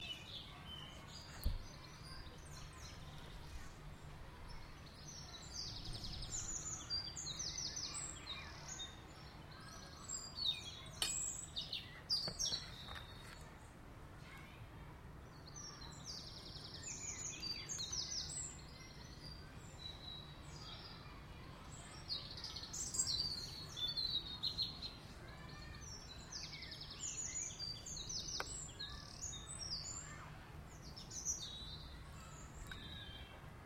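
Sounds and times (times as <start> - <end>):
birdsong in a garden: 0.0 - 14.6, 15.2 - 33.6.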